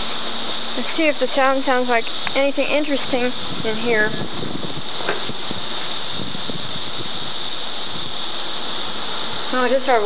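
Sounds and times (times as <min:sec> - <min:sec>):
cicadas buzzing in the trees: 0:00.0 - 0:10.0
low rustles: 0:00.0 - 0:10.0
speech: 0:01.0 - 0:04.8, 0:09.6 - 0:10.0
scattered knocks: 0:01.4 - 0:06.0.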